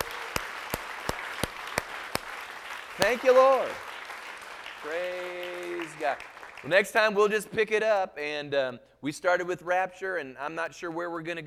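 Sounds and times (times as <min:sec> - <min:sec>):
audience applause hand clapping: 0:00.0 - 0:07.6
speech: 0:03.0 - 0:03.9, 0:04.8 - 0:11.4.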